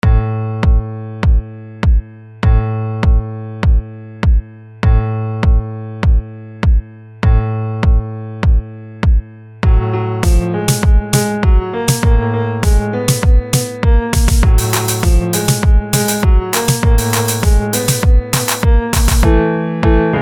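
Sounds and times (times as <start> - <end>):
abstract piano: 0.0 - 20.1.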